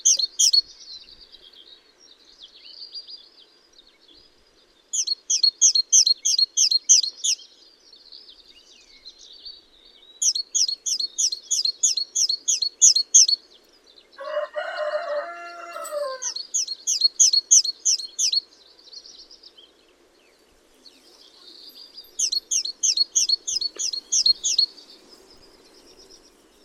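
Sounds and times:
great tit singing: 0:00.0 - 0:01.5, 0:04.9 - 0:07.6, 0:08.8 - 0:13.8, 0:15.8 - 0:19.4, 0:20.9 - 0:26.6
rooster crowing: 0:14.2 - 0:16.4.

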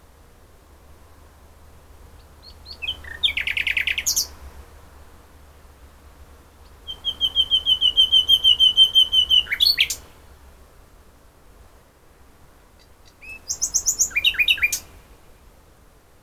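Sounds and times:
common nightingale singing: 0:02.1 - 0:04.5, 0:06.6 - 0:10.2, 0:12.7 - 0:15.5.

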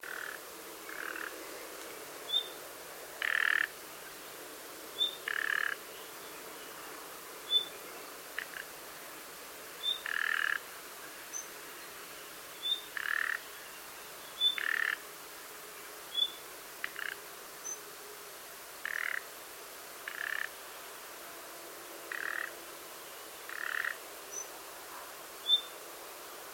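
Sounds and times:
hiss: 0:00.0 - 0:26.5
common nightingale calls: 0:02.3 - 0:02.6, 0:03.2 - 0:03.7, 0:05.0 - 0:06.8, 0:07.5 - 0:07.8, 0:09.8 - 0:10.6, 0:12.6 - 0:15.0, 0:16.1 - 0:17.8, 0:22.1 - 0:22.5, 0:23.4 - 0:24.5, 0:25.4 - 0:25.8.

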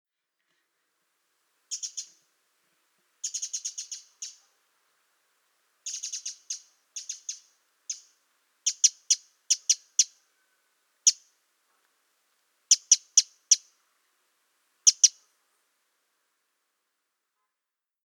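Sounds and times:
Eurasian wren tick calls: 0:01.7 - 0:02.2, 0:03.2 - 0:04.4, 0:05.9 - 0:08.1, 0:08.7 - 0:10.2, 0:11.1 - 0:11.3, 0:12.7 - 0:13.7, 0:14.8 - 0:15.2.

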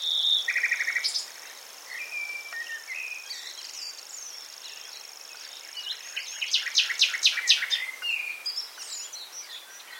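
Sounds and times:
common nightingale singing: 0:00.0 - 0:09.9.

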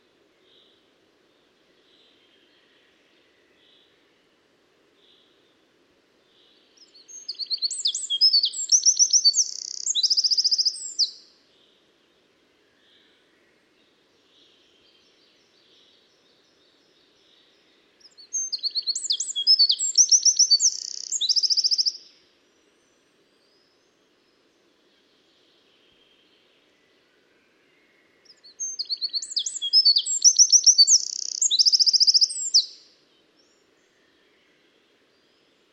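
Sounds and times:
Eurasian wren singing high rapid notes and trills: 0:06.8 - 0:11.2, 0:18.1 - 0:22.1, 0:28.3 - 0:32.9.

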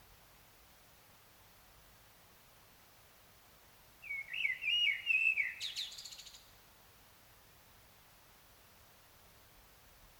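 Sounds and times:
common blackbird singing: 0:04.0 - 0:06.4.

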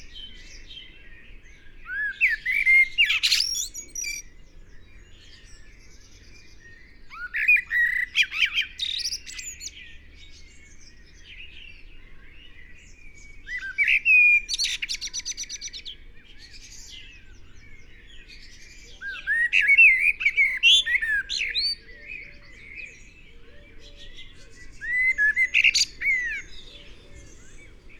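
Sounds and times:
Eurasian blackbird song: 0:00.0 - 0:27.9
other small birds chirping: 0:00.0 - 0:27.9.

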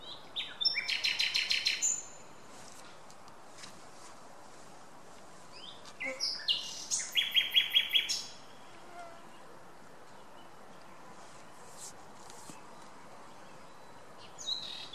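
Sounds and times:
Common nightingale song: 0:00.0 - 0:02.4, 0:05.4 - 0:14.9.

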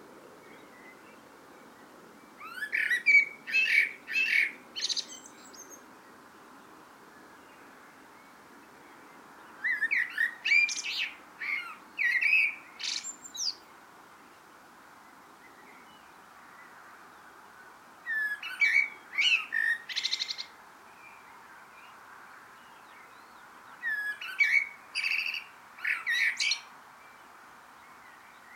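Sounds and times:
Eurasian blackbird song: 0:02.4 - 0:05.8, 0:09.6 - 0:13.7, 0:18.1 - 0:20.5, 0:22.6 - 0:27.2.

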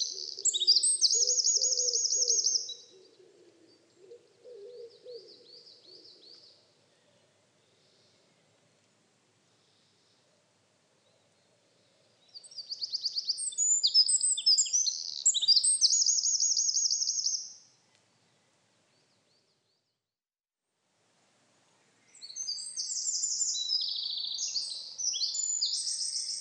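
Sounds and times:
Eurasian wren Troglodytes troglodytes singing: 0:00.0 - 0:02.9, 0:12.3 - 0:17.6, 0:22.2 - 0:26.4.

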